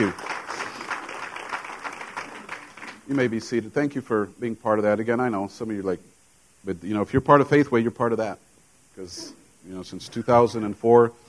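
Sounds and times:
speech: 0:00.0 - 0:00.2, 0:03.1 - 0:08.4, 0:09.0 - 0:11.2
hand clapping applause: 0:00.0 - 0:03.3.

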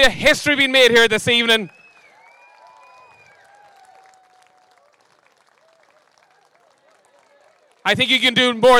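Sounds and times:
speech: 0:00.0 - 0:01.8, 0:07.9 - 0:08.7
audience applause: 0:01.6 - 0:08.3.

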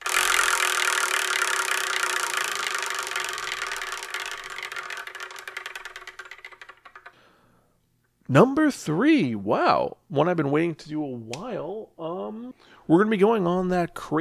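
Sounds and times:
prize wheel spinning with rapid clicks: 0:00.0 - 0:07.2
speech: 0:08.3 - 0:14.1.

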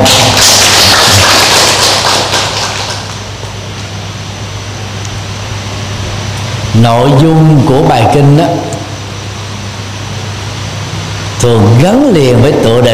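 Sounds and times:
round of applause: 0:00.0 - 0:03.6
speech: 0:06.8 - 0:08.7, 0:11.4 - 0:12.9.

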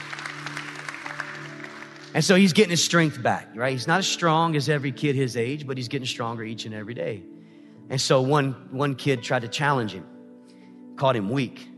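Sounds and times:
audience applause: 0:00.0 - 0:02.8
speech: 0:02.1 - 0:10.1, 0:11.0 - 0:11.7.

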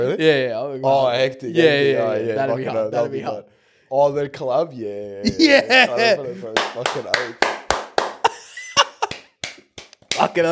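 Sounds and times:
speech: 0:00.0 - 0:07.5, 0:10.2 - 0:10.4
laughter: 0:05.2 - 0:07.4, 0:08.0 - 0:09.3
hand clapping: 0:06.5 - 0:10.4.

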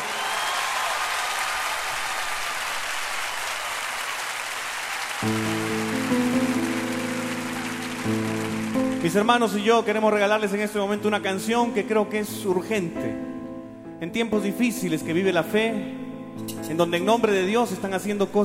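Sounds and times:
audience applause: 0:00.0 - 0:09.6
speech: 0:09.1 - 0:13.3, 0:14.0 - 0:18.4.

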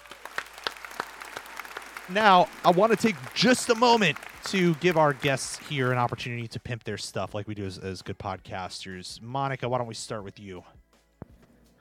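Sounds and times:
small group clapping: 0:00.0 - 0:06.4
speech: 0:02.1 - 0:10.8.

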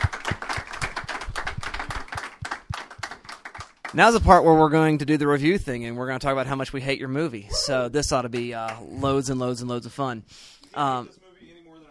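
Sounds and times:
studio audience clapping for a guest: 0:00.0 - 0:04.4, 0:08.3 - 0:08.9
speech: 0:03.9 - 0:11.2.

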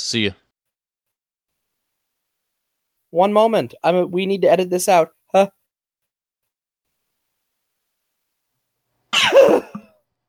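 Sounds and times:
speech: 0:00.0 - 0:00.4, 0:03.1 - 0:05.6
forceful sneeze into elbow: 0:09.1 - 0:09.8.

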